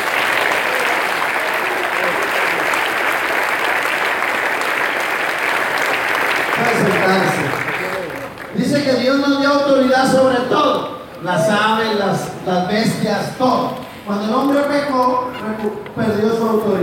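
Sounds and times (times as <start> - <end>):
audience applauding: 0.0 - 9.0
speech: 9.9 - 16.8.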